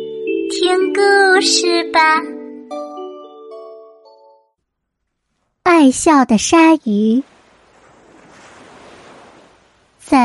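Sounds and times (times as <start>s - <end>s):
speech: 0.7s - 2.4s, 5.8s - 7.3s
ocean waves surging: 6.8s - 10.2s
wind hiss: 7.3s - 10.0s.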